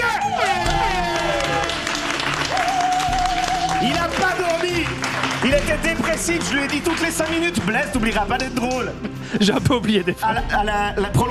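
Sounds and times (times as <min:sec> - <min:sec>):
audience applause: 0:00.2 - 0:08.8
speech: 0:06.2 - 0:11.2.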